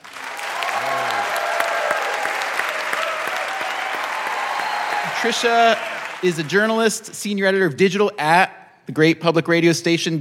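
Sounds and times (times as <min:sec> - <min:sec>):
audience applause welcoming a guest onto a stage: 0:00.0 - 0:06.9
speech: 0:05.2 - 0:10.1.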